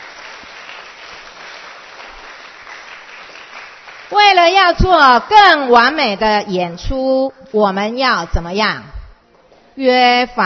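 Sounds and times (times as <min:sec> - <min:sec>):
group clapping: 0:00.0 - 0:06.5
speech: 0:04.1 - 0:08.9, 0:09.8 - 0:10.4.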